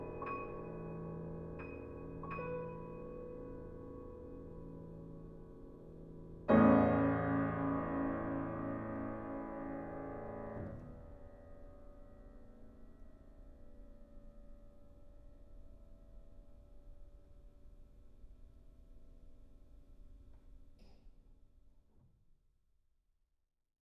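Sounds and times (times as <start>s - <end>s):
piano triptych: 0.0s - 12.7s.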